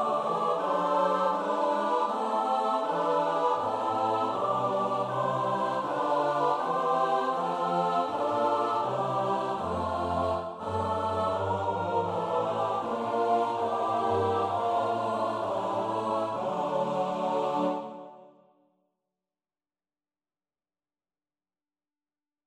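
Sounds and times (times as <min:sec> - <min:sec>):
choir singing in four parts S-A-T-B: 0:00.0 - 0:18.5.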